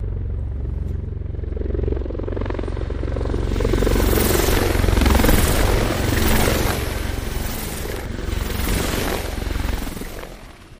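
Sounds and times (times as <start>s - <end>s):
Apache X5 helicopter flying by fast: 0.0s - 10.7s.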